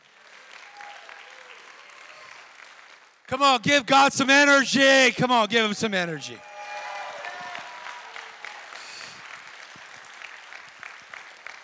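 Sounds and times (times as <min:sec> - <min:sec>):
audience clapping: 0:00.0 - 0:11.6
speech: 0:03.3 - 0:06.5
audience shouting: 0:03.3 - 0:09.0.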